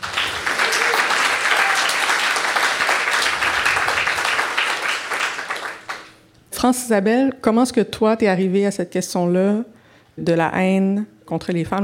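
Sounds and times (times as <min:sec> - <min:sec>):
audience applause: 0:00.0 - 0:06.2
speech: 0:06.6 - 0:11.8.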